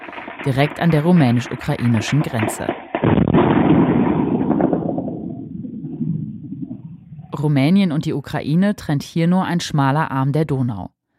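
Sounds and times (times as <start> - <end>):
speech: 0.4 - 3.2, 7.4 - 11.0
Ukrainian air defence firing at Russian attack drones: 2.4 - 6.1.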